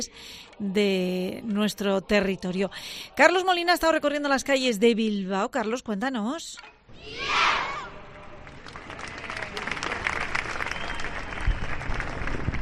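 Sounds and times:
speech: 0:00.0 - 0:07.7
crowd shout ending a choir song: 0:06.9 - 0:08.1
applause: 0:08.4 - 0:12.6.

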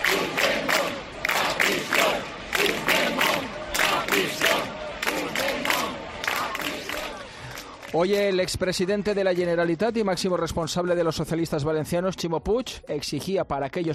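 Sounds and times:
protest crowd shouting: 0:00.0 - 0:07.9
speech: 0:07.9 - 0:13.9.

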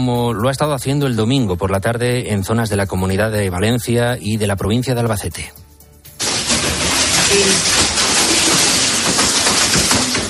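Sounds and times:
speech: 0:00.0 - 0:05.6
rain falling in the Ribera Valenciana: 0:06.2 - 0:10.2.

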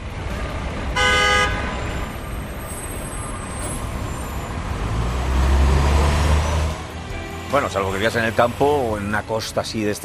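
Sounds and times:
road traffic roar: 0:00.0 - 0:10.0
car horn blaring: 0:01.0 - 0:01.8
speech: 0:07.6 - 0:10.0.

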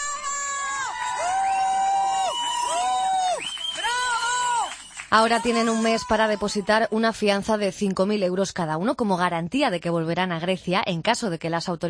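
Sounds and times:
crowd cheering and shouting encouragement: 0:00.0 - 0:06.9
speech: 0:05.1 - 0:11.8.

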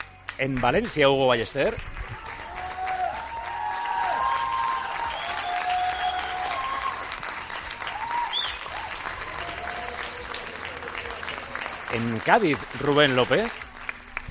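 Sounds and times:
speech: 0:00.4 - 0:02.0, 0:11.9 - 0:13.6
crowd shouting bravo: 0:02.2 - 0:13.5.

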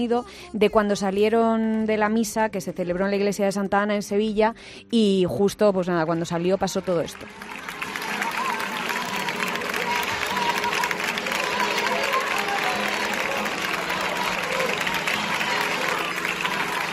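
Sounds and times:
speech: 0:00.0 - 0:07.8
crowd clapping in rhythm: 0:06.3 - 0:16.9
people cheering and calling out: 0:07.3 - 0:16.9.

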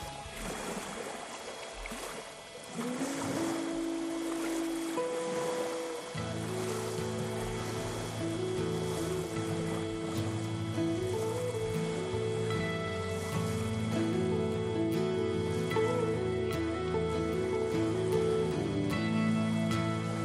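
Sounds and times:
ocean waves washing on a shore: 0:00.0 - 0:20.2
sustained low musical tones: 0:00.0 - 0:20.2.

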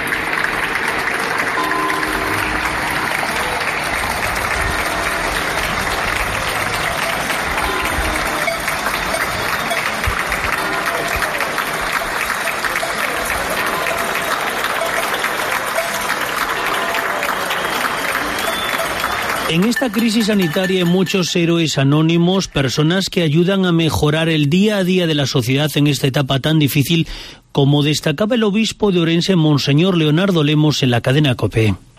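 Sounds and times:
faint cheering: 0:00.0 - 0:21.0
applause from balconies: 0:00.0 - 0:21.6
speech: 0:19.6 - 0:31.9.

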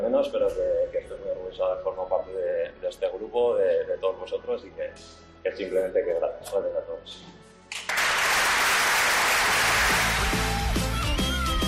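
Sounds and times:
speech: 0:00.2 - 0:00.8, 0:01.5 - 0:07.4
ovation from teammates: 0:07.7 - 0:11.6.

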